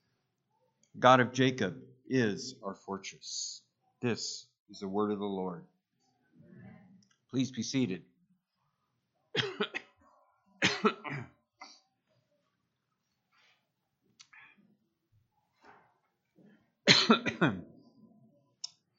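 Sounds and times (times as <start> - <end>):
speech: 1.0 - 5.7, 7.3 - 8.1, 9.4 - 9.7, 17.1 - 17.7
person coughing from hay fever in a church service: 9.4 - 9.9, 10.6 - 11.8, 16.9 - 17.7.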